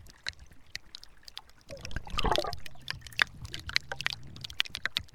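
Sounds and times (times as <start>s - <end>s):
iceberg moaning close up: 1.7s - 5.0s.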